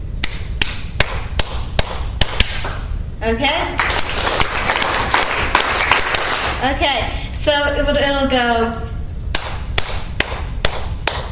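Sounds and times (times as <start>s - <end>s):
group clapping a beat: 0.2s - 2.9s, 3.6s - 6.6s, 9.3s - 11.3s
speech: 3.2s - 3.9s, 6.6s - 8.9s.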